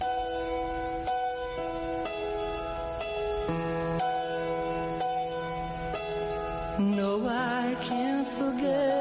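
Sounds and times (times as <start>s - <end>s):
1971 slow emotional ballad recording: 0.0s - 9.0s
person singing with vibrato: 6.7s - 9.0s.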